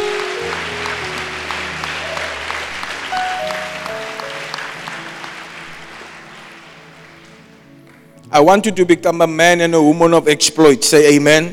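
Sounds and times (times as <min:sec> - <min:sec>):
audience clapping: 0:00.0 - 0:08.3
speech: 0:08.4 - 0:11.5.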